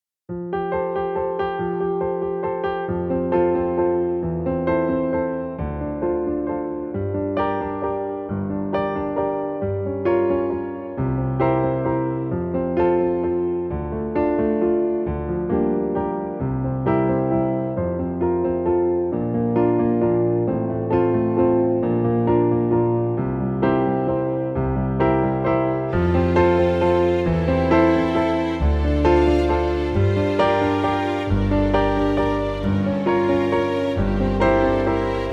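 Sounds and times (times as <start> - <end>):
instrumental music without choir: 0.3 - 35.3.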